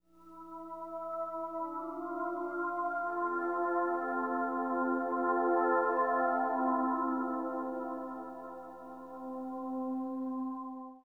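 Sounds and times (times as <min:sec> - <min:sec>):
hip hop and R&B synth pad: 0:00.2 - 0:10.9.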